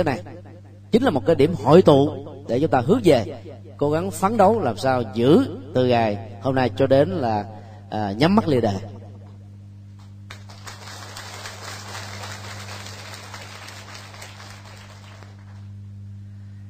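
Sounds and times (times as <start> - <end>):
speech: 0.0 - 8.9
applause from monks and novices: 10.0 - 15.7.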